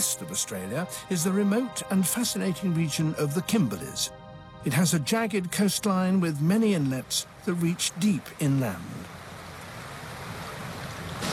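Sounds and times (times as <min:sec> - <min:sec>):
wind: 0:00.0 - 0:11.3
speech: 0:00.1 - 0:09.2
tide surging into coastal inlets in the Kimberley region of northwest Australia: 0:06.2 - 0:11.3.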